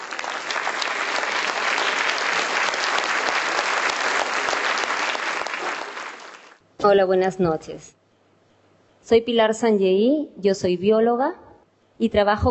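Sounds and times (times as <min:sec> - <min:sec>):
audience applause welcoming a guest speaker at a book premiere: 0:00.0 - 0:06.6
speech: 0:06.8 - 0:08.0, 0:09.1 - 0:11.4, 0:12.0 - 0:12.4.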